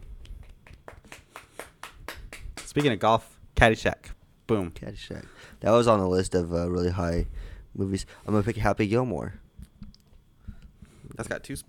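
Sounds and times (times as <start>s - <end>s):
low hum: 0.0s - 11.6s
golf clap, light polite clapping: 0.2s - 3.1s
speech: 2.8s - 9.4s, 11.2s - 11.6s.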